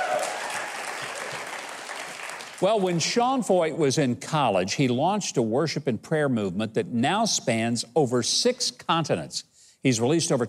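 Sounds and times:
audience applause: 0.0 - 3.0
speech: 2.6 - 10.4.

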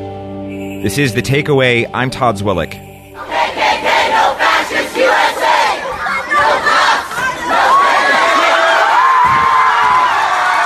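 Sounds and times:
speech: 0.8 - 2.9
protest crowd shouting: 3.2 - 10.6.

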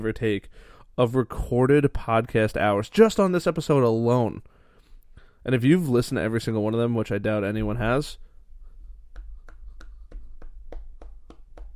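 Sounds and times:
speech: 0.0 - 4.5, 5.4 - 8.2
single person clapping: 9.1 - 11.7.

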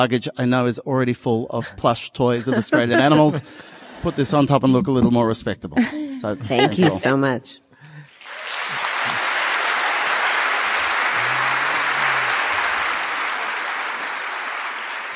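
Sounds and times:
speech: 0.0 - 7.6
laughter: 1.5 - 7.1, 8.7 - 13.3
audience applause: 8.1 - 15.1.

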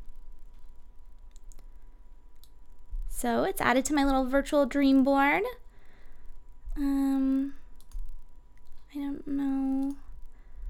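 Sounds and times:
low steady hum: 0.0 - 10.6
computer mouse clicks: 0.5 - 1.7, 7.8 - 8.8
speech: 3.2 - 5.6.

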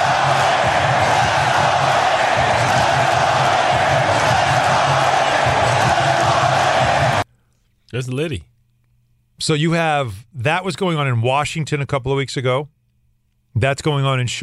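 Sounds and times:
arena crowd cheering in Charlotte: 0.0 - 7.2
speech: 8.0 - 8.5, 9.4 - 12.8, 13.6 - 14.4.

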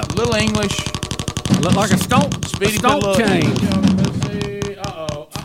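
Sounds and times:
prize wheel spinning and clicking: 0.0 - 4.2
speech: 0.2 - 1.0, 1.6 - 4.5.

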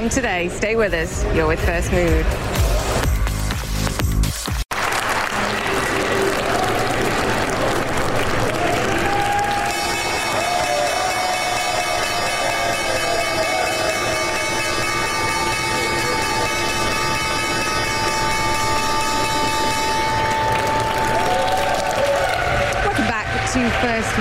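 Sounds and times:
speech: 0.0 - 2.7
applause: 3.4 - 14.3, 18.0 - 24.1
New York Stock Exchange opening bell ringing: 11.6 - 21.4.

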